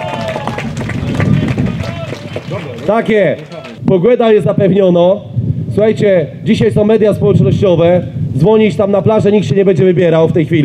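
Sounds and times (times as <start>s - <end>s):
audience applause: 0.0s - 3.8s
speech: 2.9s - 10.6s.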